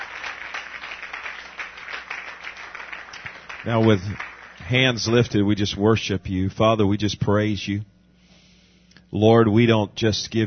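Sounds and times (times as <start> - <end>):
audience clapping hands in praise: 0.0 - 5.4
speech: 3.6 - 7.9, 9.1 - 10.4.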